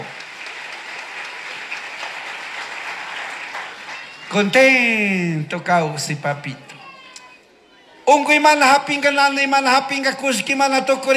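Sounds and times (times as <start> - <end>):
audience applause: 0.0 - 4.8
speech: 4.3 - 6.7, 8.1 - 11.1.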